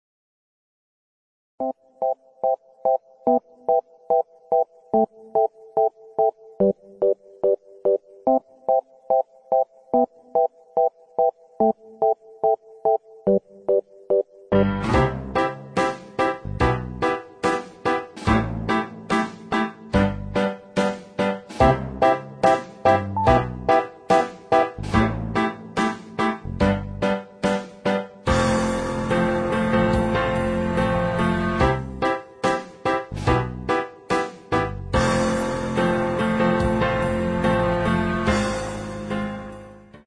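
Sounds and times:
instrumental music: 0:01.6 - 0:40.0.

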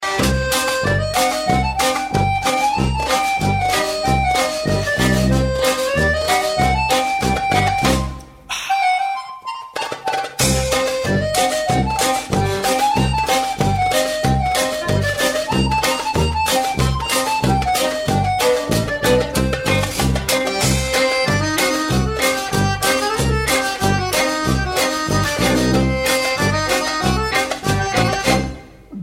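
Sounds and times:
Balkan music mix: 0:00.0 - 0:29.0.

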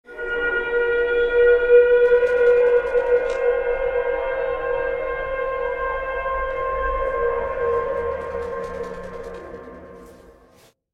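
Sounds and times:
siren: 0:00.0 - 0:10.6.

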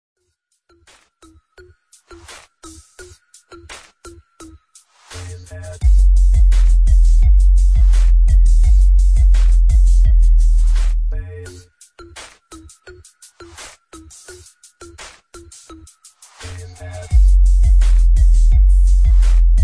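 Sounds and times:
boosted bass: 0:05.3 - 0:11.6, 0:16.6 - 0:19.6.

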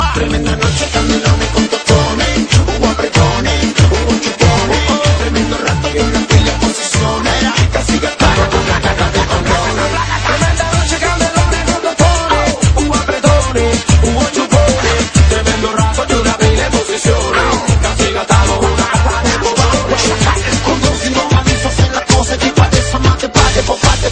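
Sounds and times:
cool music: 0:00.0 - 0:24.1.

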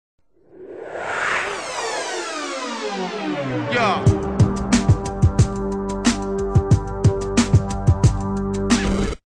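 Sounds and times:
hip hop music: 0:01.9 - 0:08.8.

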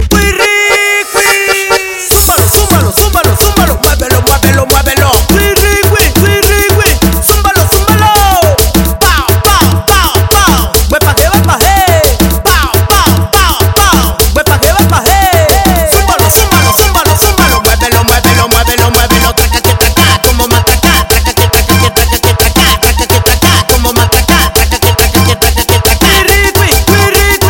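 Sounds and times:
tribal mix Latin ringtone music: 0:00.0 - 0:27.4.

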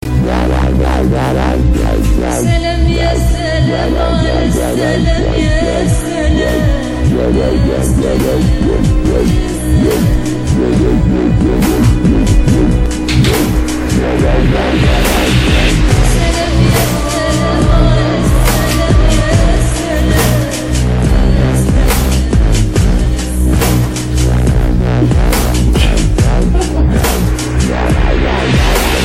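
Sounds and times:
crazy dubstep music: 0:00.0 - 0:29.0
laughter: 0:25.8 - 0:27.6.

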